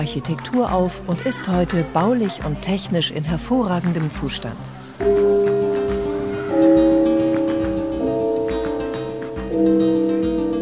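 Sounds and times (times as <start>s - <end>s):
speech: 0.0s - 5.5s
school break gong at Marienschule Münster: 5.0s - 10.5s.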